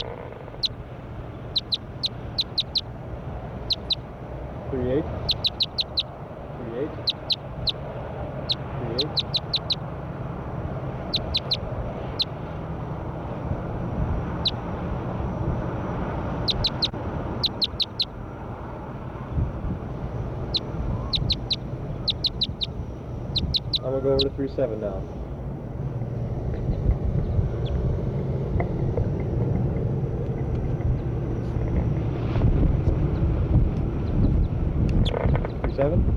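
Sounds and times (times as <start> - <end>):
bird calls of sharp high-pitched chirps: 0.0 - 0.8, 1.4 - 2.9, 3.6 - 4.0, 5.2 - 6.2, 6.9 - 7.8, 8.4 - 9.9, 11.0 - 12.4, 14.4 - 14.6, 16.4 - 18.2, 20.4 - 24.4
rumbling noise: 0.0 - 36.1
speech: 24.5 - 25.2.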